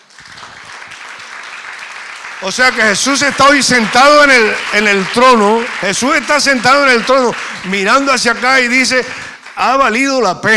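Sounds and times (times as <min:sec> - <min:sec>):
audience applause: 0:00.0 - 0:10.5
speech: 0:02.4 - 0:10.5.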